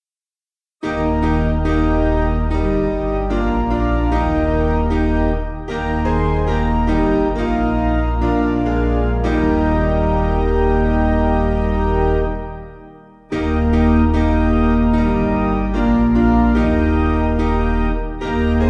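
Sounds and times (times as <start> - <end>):
piano: 0.8 - 18.6.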